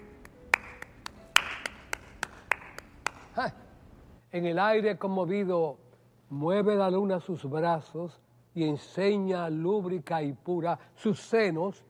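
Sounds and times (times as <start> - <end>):
hand clapping: 0.0 - 3.4
speech: 3.4 - 3.6, 4.3 - 11.8.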